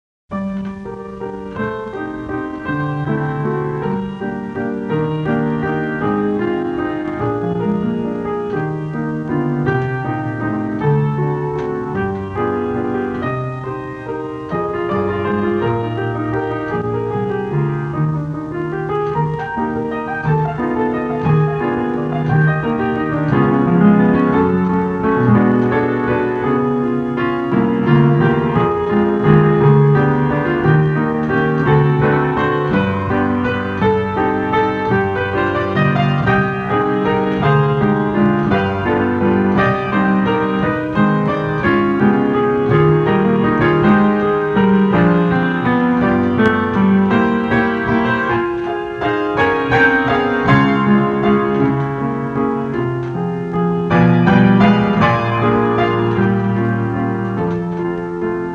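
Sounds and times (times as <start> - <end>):
waltz music: 0.3 - 58.5.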